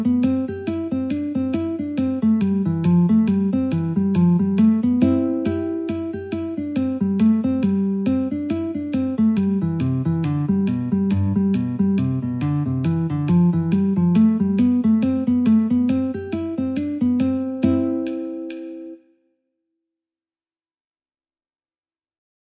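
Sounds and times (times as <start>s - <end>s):
guitar metronome ticking: 0.0s - 19.0s.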